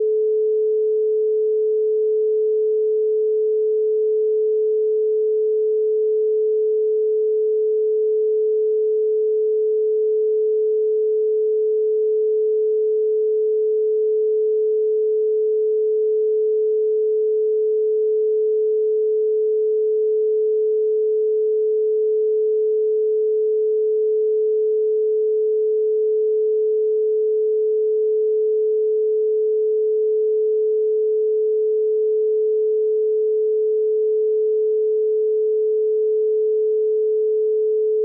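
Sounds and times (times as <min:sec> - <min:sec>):
432 Hz pure tone: 0:00.0 - 0:38.0.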